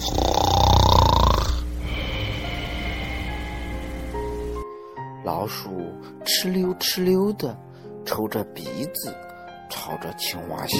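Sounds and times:
snoring: 0.0 - 2.2
quiet breathing: 1.6 - 5.1
speech: 5.5 - 10.7.

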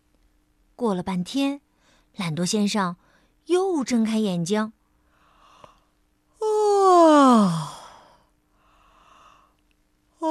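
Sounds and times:
speech: 0.8 - 1.6, 2.2 - 4.8
yawning: 6.4 - 8.2.

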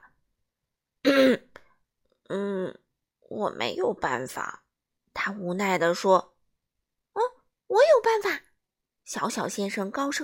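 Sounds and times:
throat clearing: 1.1 - 1.6
speech: 3.4 - 4.6, 5.2 - 6.3, 8.0 - 8.4, 9.1 - 10.2.

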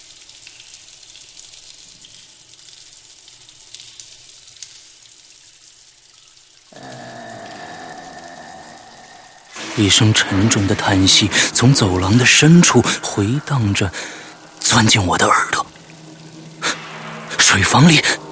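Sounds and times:
flowing running water: 0.0 - 18.3
speech: 9.8 - 15.6, 17.6 - 18.2.

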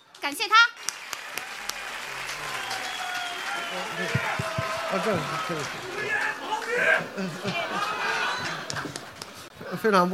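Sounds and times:
speech: 0.2 - 1.5, 3.8 - 9.1, 9.7 - 10.1
audience applause: 0.8 - 9.5
laughter: 2.1 - 9.4.

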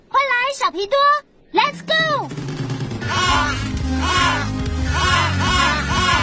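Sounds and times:
speech: 0.6 - 2.4
low rumble: 1.7 - 5.2
chorus of penguin calls with harsh braying cries: 2.6 - 6.2.

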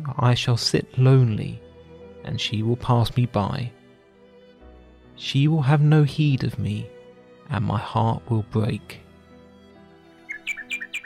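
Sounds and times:
speech: 0.1 - 1.6, 2.2 - 3.8, 5.2 - 6.9, 7.5 - 9.0
nightingale singing: 10.2 - 11.0.

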